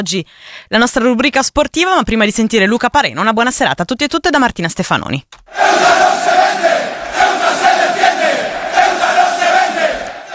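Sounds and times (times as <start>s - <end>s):
speech: 0.0s - 6.7s
football supporters chanting a slogan in unison: 5.5s - 10.3s.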